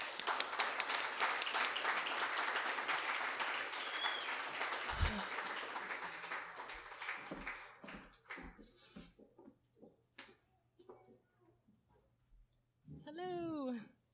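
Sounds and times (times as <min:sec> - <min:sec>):
audience applause: 0:00.0 - 0:08.6.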